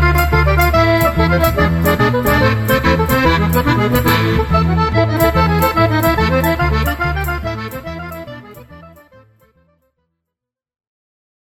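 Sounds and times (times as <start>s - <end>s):
tarantella dance music: 0.0s - 9.0s.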